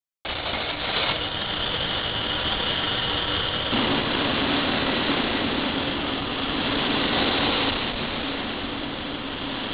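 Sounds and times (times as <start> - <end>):
engine: 0.2 - 9.7.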